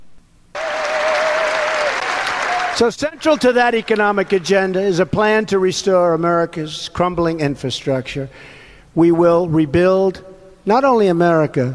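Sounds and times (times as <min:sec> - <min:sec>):
Republican crowd cheering and applauding: 0:00.5 - 0:04.9
speech: 0:02.8 - 0:11.7.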